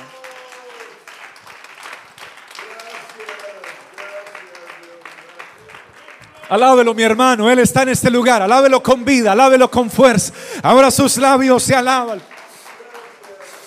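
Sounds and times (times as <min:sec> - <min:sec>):
audience applauding: 0:00.0 - 0:07.6, 0:10.6 - 0:13.6
speech: 0:06.5 - 0:12.3.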